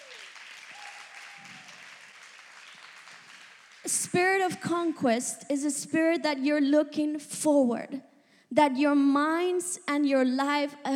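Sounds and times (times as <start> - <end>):
audience applause: 0.0 - 3.9
speech: 3.9 - 10.9.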